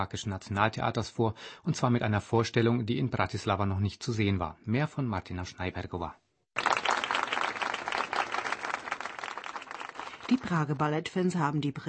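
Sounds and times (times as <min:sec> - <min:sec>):
speech: 0:00.0 - 0:06.2, 0:10.3 - 0:11.8
theatre audience applause: 0:06.6 - 0:10.8.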